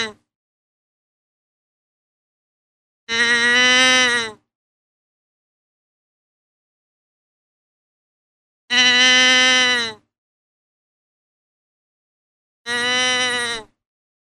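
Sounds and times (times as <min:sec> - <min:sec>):
deer bleating: 0:03.1 - 0:04.4, 0:08.7 - 0:10.0, 0:12.7 - 0:13.7.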